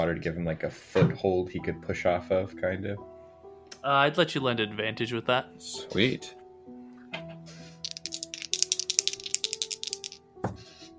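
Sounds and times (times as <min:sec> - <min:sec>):
speech: 0:00.0 - 0:03.1, 0:03.8 - 0:06.4
dice rolling: 0:07.8 - 0:10.2.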